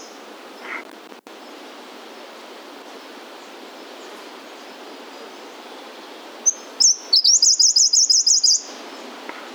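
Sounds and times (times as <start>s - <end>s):
Claudias Leaf Warbler Phylloscopus claudiae: 0.0s - 9.5s.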